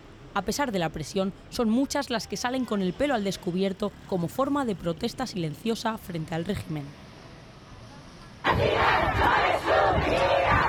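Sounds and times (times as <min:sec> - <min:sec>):
speech: 0:00.4 - 0:07.0
protest crowd shouting in the streets: 0:08.4 - 0:10.6.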